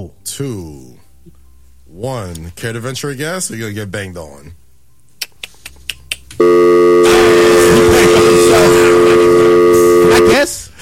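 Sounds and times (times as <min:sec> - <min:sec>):
speech: 0:00.2 - 0:04.6
loud telephone dial tone: 0:06.4 - 0:10.4.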